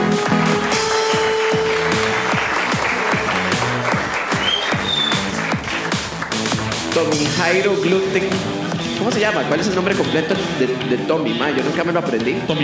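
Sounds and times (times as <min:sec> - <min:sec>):
audience applause: 0:00.0 - 0:07.2
speech: 0:07.0 - 0:12.6.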